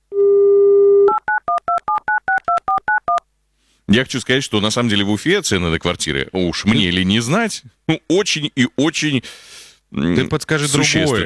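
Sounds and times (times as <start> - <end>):
telephone dial tone: 0.1 - 1.4
speech: 3.9 - 11.2.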